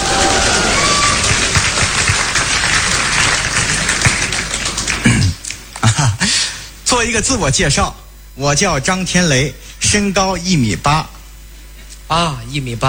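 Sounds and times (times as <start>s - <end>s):
audience applause: 0.0s - 5.9s
speech: 7.0s - 11.2s, 12.1s - 12.8s.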